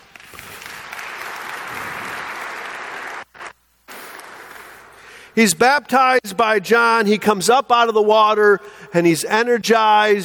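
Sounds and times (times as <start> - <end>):
audience applauding: 0.0 - 3.5
speech: 5.4 - 10.2.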